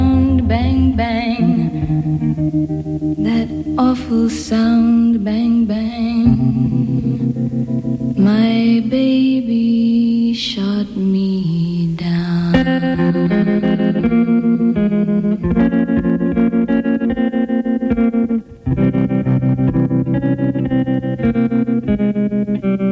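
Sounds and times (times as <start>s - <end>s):
pop song recording playing: 0.0s - 22.8s
speech: 3.9s - 7.0s.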